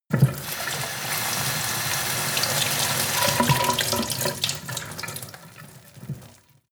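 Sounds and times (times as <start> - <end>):
sink water running into a medium pot: 0.1 - 6.5.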